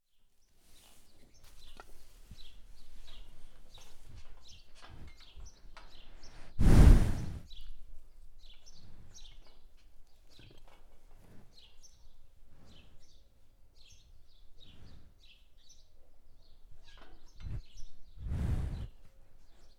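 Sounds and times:
cow breathing: 0:01.9 - 0:07.5, 0:10.6 - 0:15.6, 0:17.4 - 0:19.7.

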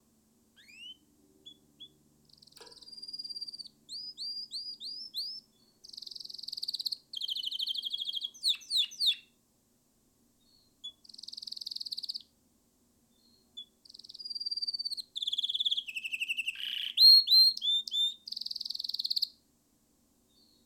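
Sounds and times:
canary song: 0:00.6 - 0:09.4, 0:10.4 - 0:12.4, 0:13.1 - 0:19.4, 0:20.3 - 0:20.6.

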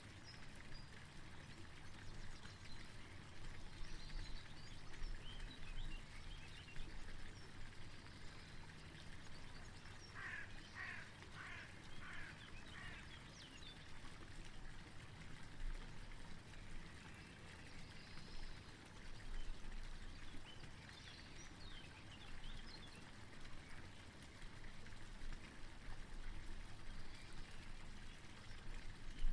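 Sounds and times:
running water: 0:00.0 - 0:29.3
bird calls: 0:10.0 - 0:13.7.

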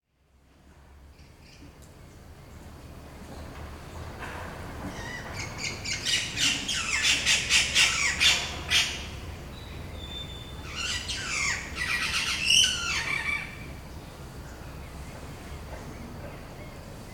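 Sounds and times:
birds at Palenque giving harsh raspy squawks: 0:04.9 - 0:09.1, 0:10.6 - 0:13.7.

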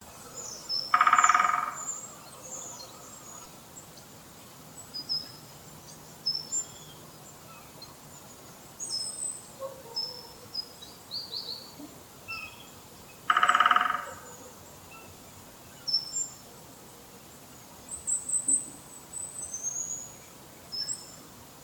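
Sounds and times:
woodpecker drumming: 0:00.9 - 0:01.9, 0:13.3 - 0:14.2.

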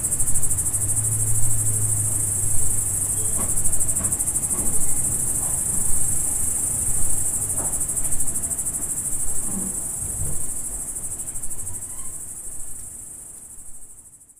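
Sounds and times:
low engine-like hum: 0:00.0 - 0:10.6
crickets chorus: 0:00.0 - 0:14.3.

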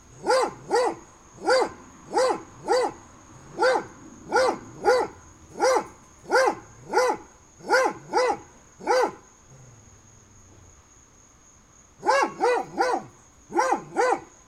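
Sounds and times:
dogs barking through a fence: 0:00.2 - 0:09.2, 0:12.0 - 0:14.3.

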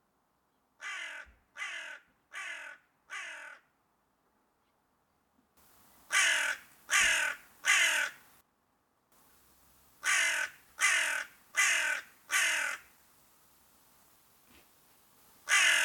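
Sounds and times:
crow cawing: 0:00.8 - 0:03.7, 0:06.0 - 0:08.4, 0:10.0 - 0:13.0, 0:15.4 - 0:15.8.

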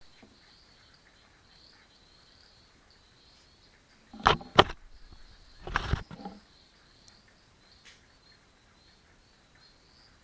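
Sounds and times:
frogs chorusing at a dam: 0:00.1 - 0:10.2.

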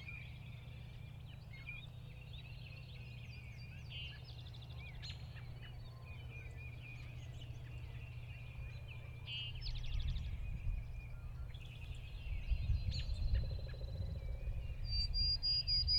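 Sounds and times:
birds chirping and trilling in a mixed chorus in early spring fields near a lake: 0:00.0 - 0:15.9.

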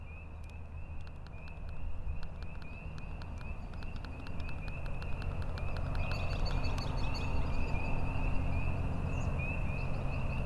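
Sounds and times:
spring peepers chorusing in rural outdoor ambience: 0:00.1 - 0:10.4.

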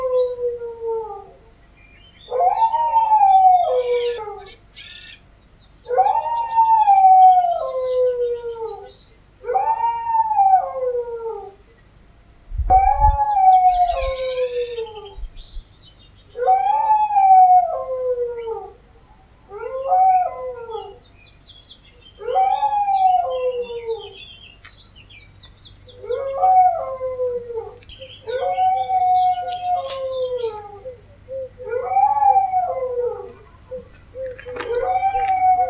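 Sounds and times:
dog howling: 0:00.0 - 0:01.4, 0:02.3 - 0:04.6, 0:05.9 - 0:11.6, 0:12.7 - 0:15.2, 0:16.4 - 0:18.8, 0:19.5 - 0:21.0, 0:22.2 - 0:24.2, 0:26.0 - 0:35.6.

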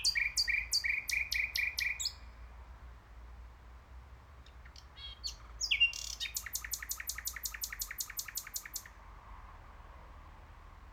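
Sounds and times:
common nightingale singing: 0:00.0 - 0:02.3, 0:04.7 - 0:09.0.

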